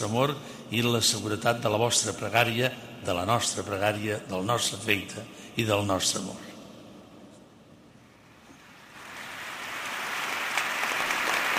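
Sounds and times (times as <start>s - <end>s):
speech: 0.0s - 6.5s
spontaneous applause: 9.0s - 11.5s.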